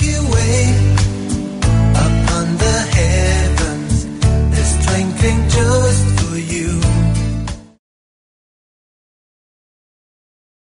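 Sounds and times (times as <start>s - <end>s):
night music: 0.0s - 7.8s.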